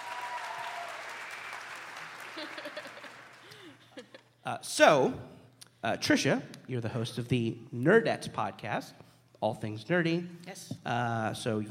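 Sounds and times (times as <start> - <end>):
audience applause: 0.0 - 3.8
laughter: 2.3 - 4.4
speech: 2.4 - 3.1, 4.0 - 11.6.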